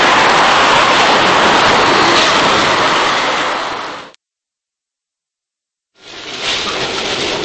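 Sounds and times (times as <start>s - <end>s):
U-Bahn tram-style underground train in motion: 0.0s - 4.2s, 6.0s - 7.4s.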